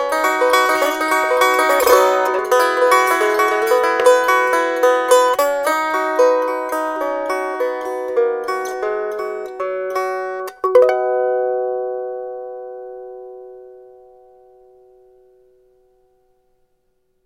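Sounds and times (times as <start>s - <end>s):
banjo: 0.0s - 11.9s.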